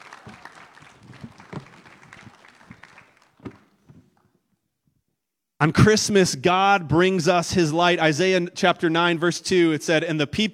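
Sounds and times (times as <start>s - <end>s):
congregation applauding a child helper at a Christmas Eve church service: 0.0s - 4.3s
speech: 5.6s - 10.5s.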